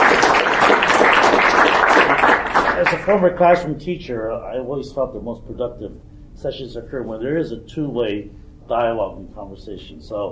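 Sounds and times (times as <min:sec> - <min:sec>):
audience applause for panel speakers at an education and workforce session: 0:00.0 - 0:03.2
speech: 0:02.8 - 0:10.3.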